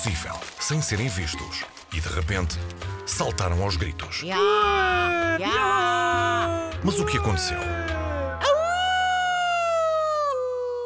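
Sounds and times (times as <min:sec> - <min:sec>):
speech: 0:00.0 - 0:08.0
wolf howling: 0:04.3 - 0:10.8.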